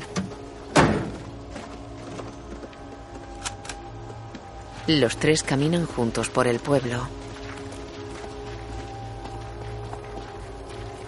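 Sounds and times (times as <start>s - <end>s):
truck door slamming: 0.2s - 1.3s
speech: 4.9s - 7.2s.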